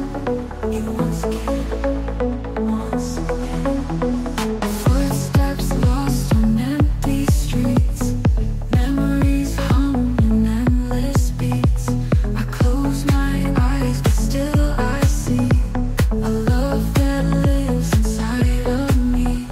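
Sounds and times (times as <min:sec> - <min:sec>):
atmospheric deep house and chillstep music: 0:00.0 - 0:19.4.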